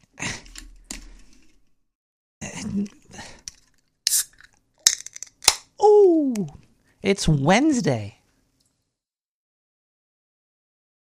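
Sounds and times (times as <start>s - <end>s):
speech: 2.6s - 3.2s, 6.4s - 8.2s
beer being opened: 4.1s - 5.6s.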